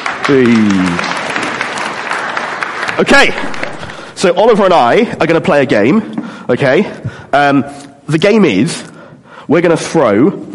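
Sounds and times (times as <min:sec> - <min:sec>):
audience applause: 0:00.0 - 0:04.2
speech: 0:00.3 - 0:01.1, 0:03.0 - 0:08.9, 0:09.5 - 0:10.5.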